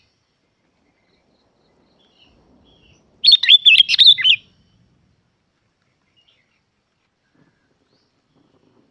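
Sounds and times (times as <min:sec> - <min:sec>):
Yellow-vented bulbul bubbly chirping song: 0:01.3 - 0:04.5.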